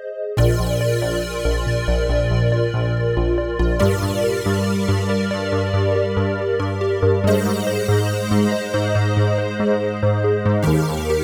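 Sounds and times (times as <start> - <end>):
Korg Radias-R synthesizer patch: 0.4 - 11.2.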